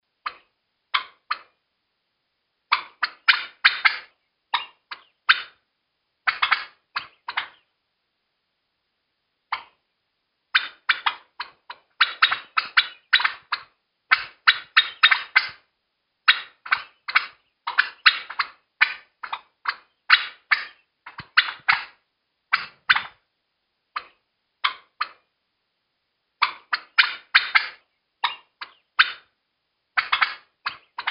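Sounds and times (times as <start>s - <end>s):
turkey panic calling: 0.2s - 1.5s, 2.7s - 5.6s, 6.2s - 7.7s, 9.5s - 9.8s, 10.5s - 15.6s, 16.3s - 23.2s, 23.9s - 25.2s, 26.4s - 29.3s, 29.9s - 31.0s.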